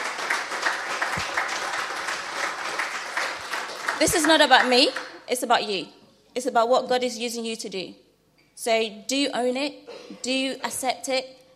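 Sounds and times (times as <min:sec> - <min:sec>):
crowd applause: 0:00.0 - 0:05.2
speech: 0:04.0 - 0:08.0, 0:08.6 - 0:11.4.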